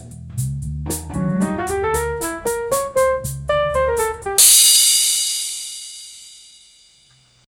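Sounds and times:
jazz music: 0.6 - 6.5.

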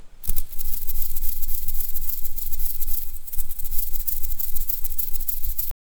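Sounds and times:
butterfly wings fluttering: 0.0 - 5.8.

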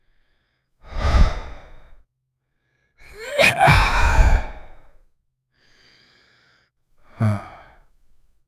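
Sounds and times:
man growling low: 3.1 - 4.6, 7.2 - 7.6.

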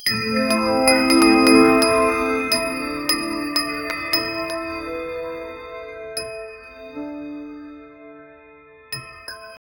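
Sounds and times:
blending temple bells: 0.0 - 7.3.

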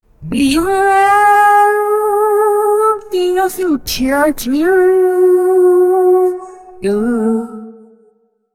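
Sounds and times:
person singing with echo: 0.2 - 8.4.

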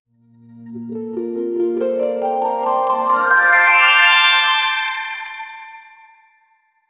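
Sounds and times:
whimsical beautiful bells: 1.6 - 6.2.

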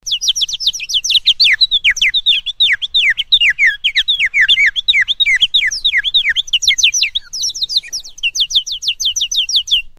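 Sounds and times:
cute duckling: 0.0 - 9.9.

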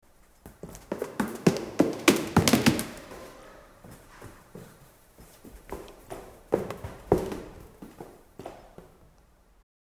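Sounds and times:
Santa Claus falling down: 0.9 - 3.4.

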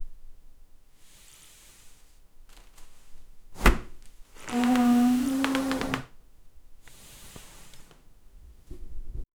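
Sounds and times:
person standing up from chair: 3.6 - 6.1.

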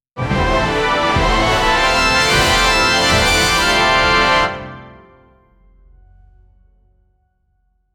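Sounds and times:
maximum energy jackpot circus music: 0.2 - 5.2.

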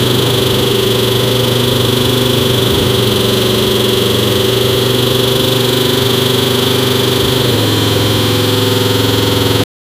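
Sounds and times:
V16 hypercar engine: 0.0 - 9.7.

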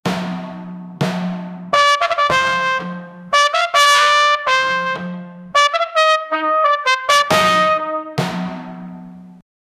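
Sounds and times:
brass instruments: 1.7 - 8.8.

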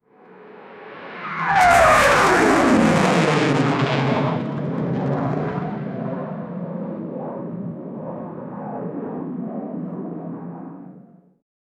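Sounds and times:
WW2 B17 bomber aircraft engines: 1.0 - 11.2.

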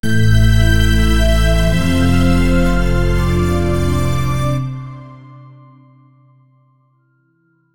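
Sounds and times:
corporate logo music: 0.0 - 5.8.

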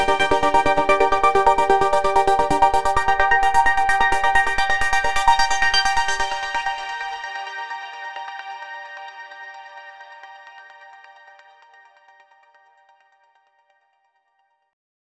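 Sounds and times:
high energy progressive house music: 0.0 - 11.6.

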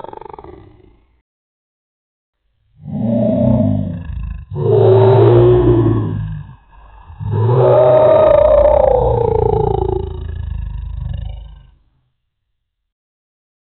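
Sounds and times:
dinosaur roaring: 2.8 - 11.8.

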